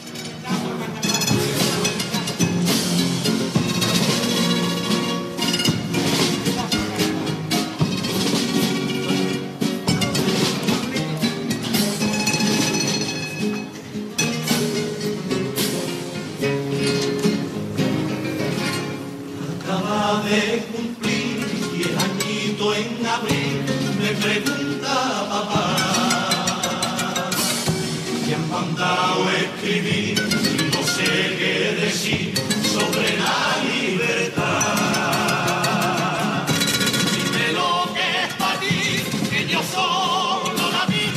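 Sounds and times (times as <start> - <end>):
strummed accompaniment: 0.0 - 41.1
carnival comparsa singing a pasodoble: 19.3 - 41.1.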